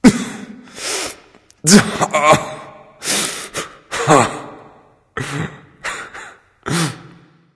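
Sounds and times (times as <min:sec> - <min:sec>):
non-verbal person crying boohoo: 0:01.6 - 0:02.7, 0:03.9 - 0:04.6.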